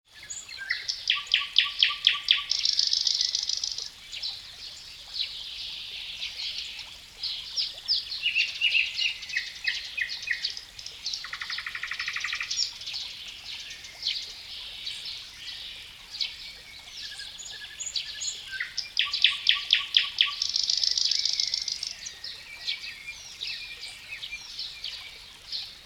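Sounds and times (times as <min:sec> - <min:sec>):
nightingale singing in natural woodland beside a water stream: 0:00.2 - 0:03.8, 0:08.2 - 0:12.8, 0:17.0 - 0:24.9.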